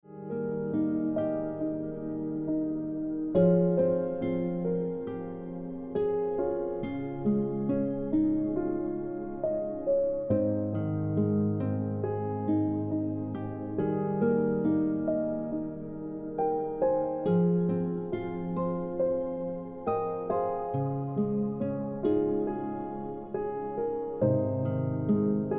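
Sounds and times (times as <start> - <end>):
piano ringtone music: 0.1 - 25.5.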